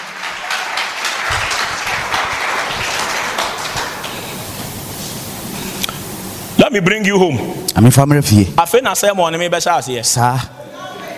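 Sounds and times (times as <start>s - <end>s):
congregation clapping during a sermon: 0.0s - 5.5s
speech: 6.7s - 10.7s.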